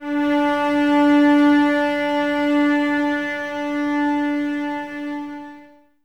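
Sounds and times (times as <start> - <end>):
cello section playing D without vibrato: 0.0 - 6.0.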